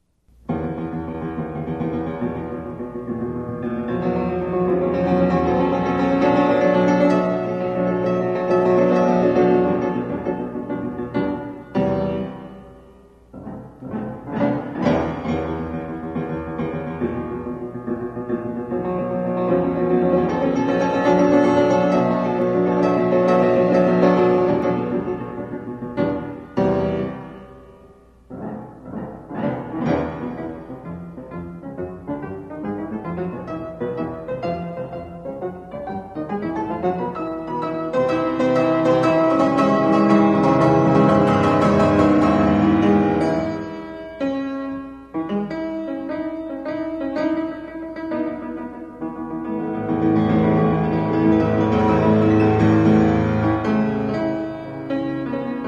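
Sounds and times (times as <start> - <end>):
piano piece: 0.0 - 55.6.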